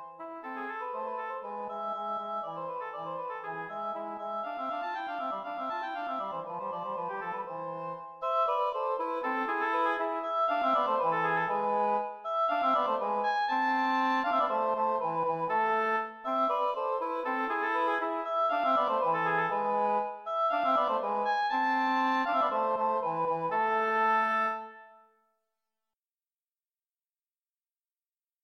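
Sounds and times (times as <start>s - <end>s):
two oboes playing: 0.0s - 25.1s.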